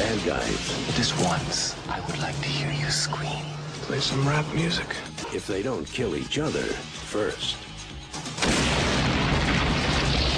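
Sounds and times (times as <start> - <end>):
speech: 0.2 - 7.7
bomb explosion: 8.4 - 10.3.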